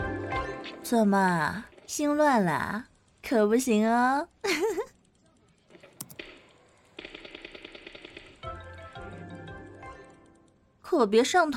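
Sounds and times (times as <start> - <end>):
speech: 0.7 - 4.8, 10.9 - 11.5
gunfire in a shooting video game: 6.0 - 8.9.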